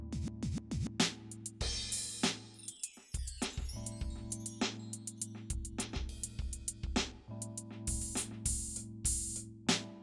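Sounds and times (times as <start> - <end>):
Simmons SD1200 drum machine R n B beat: 0.1 - 9.9.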